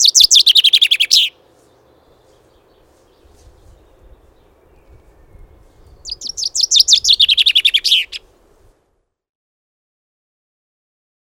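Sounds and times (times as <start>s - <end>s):
common chaffinch calling: 0.0s - 8.3s.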